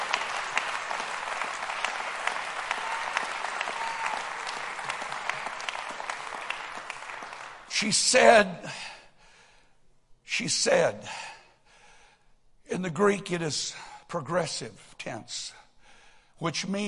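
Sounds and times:
crowd clapping hands: 0.0s - 7.9s
speech: 7.8s - 8.9s, 10.4s - 11.3s, 12.7s - 15.6s, 16.4s - 16.8s.

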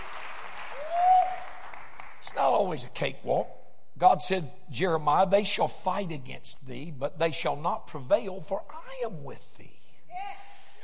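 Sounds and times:
audience applause: 0.0s - 2.3s
speech: 2.6s - 10.4s.

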